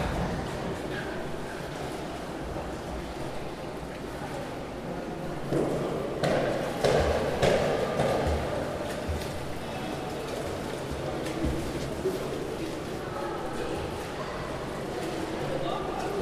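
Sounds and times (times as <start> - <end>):
indoor swimming pool ambience: 0.0 - 16.1.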